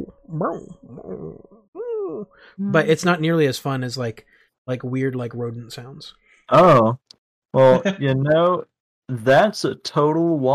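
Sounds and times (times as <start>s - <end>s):
speech: 0.4s - 1.4s, 2.2s - 10.5s
person imitating dog whimpers and yelps: 0.4s - 2.3s.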